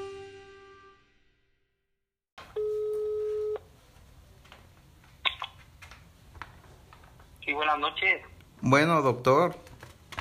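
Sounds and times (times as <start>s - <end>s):
telephone line tone as a call is placed to a doctor: 2.6s - 3.7s
speech: 7.8s - 9.7s.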